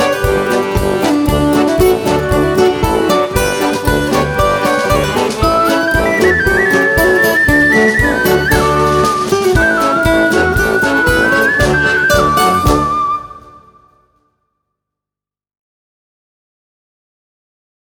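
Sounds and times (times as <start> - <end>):
Ukrainian folk dance music: 0.0 - 13.9.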